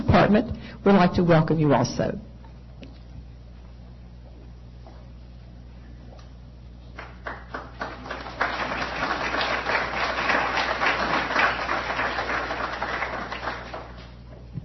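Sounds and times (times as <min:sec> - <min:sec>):
speech: 0:00.1 - 0:02.3
audience applause: 0:07.0 - 0:14.2.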